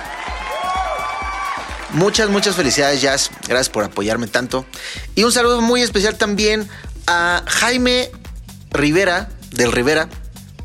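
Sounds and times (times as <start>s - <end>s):
applause and cheering: 0.0s - 3.9s
speech: 1.9s - 10.2s.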